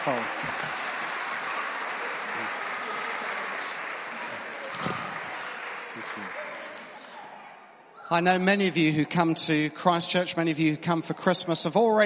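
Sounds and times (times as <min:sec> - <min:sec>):
speech: 0:00.0 - 0:00.7, 0:08.1 - 0:12.0
audience applause: 0:00.0 - 0:07.3.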